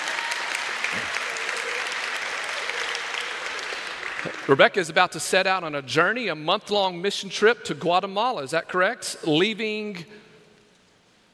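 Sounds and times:
audience applauding: 0.0s - 4.8s
speech: 4.2s - 10.2s.

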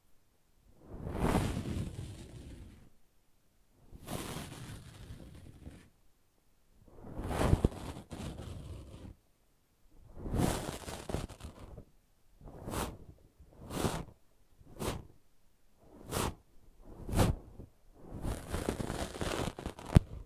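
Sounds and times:
brushing and scratching strokes: 0.8s - 2.9s, 3.8s - 6.0s, 6.9s - 9.2s, 10.1s - 11.8s, 12.4s - 15.2s, 15.8s - 20.2s.

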